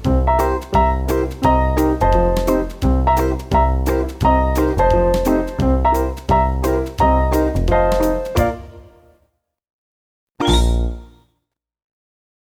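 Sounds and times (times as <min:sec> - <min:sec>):
atelier jazz music: 0:00.0 - 0:09.0, 0:10.4 - 0:11.2.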